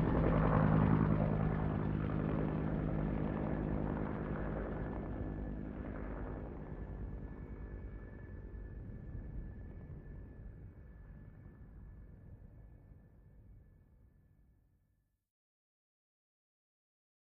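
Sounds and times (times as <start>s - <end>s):
UH1 Huey helicopter hovering: 0.0s - 10.4s.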